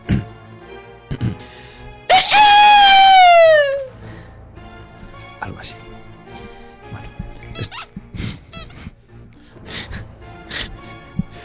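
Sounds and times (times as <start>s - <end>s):
person imitating a werewolf howl: 2.1s - 3.9s.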